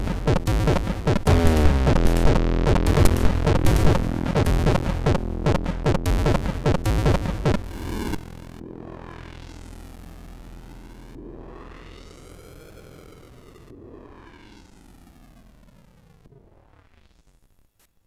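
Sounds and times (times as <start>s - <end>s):
MOS6581R3 SID chip music: 0.0s - 8.2s.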